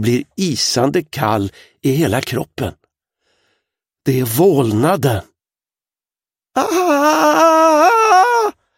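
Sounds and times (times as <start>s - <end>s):
speech: 0.0s - 2.8s, 4.0s - 5.3s, 6.6s - 7.9s
girl screaming: 6.6s - 8.6s.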